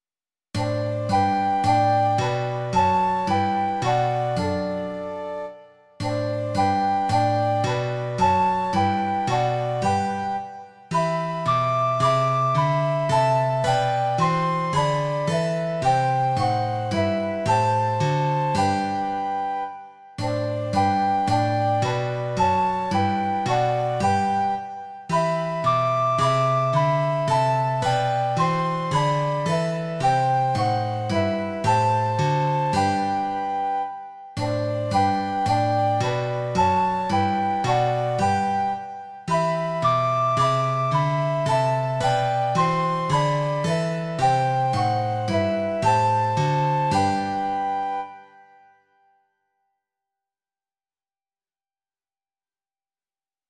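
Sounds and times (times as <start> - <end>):
guitar: 0.6 - 48.4
two flutes: 0.6 - 49.1.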